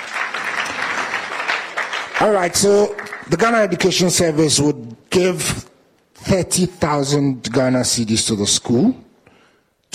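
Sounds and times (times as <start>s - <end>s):
audience clapping: 0.0s - 3.9s
speech: 2.2s - 5.5s, 6.2s - 9.1s.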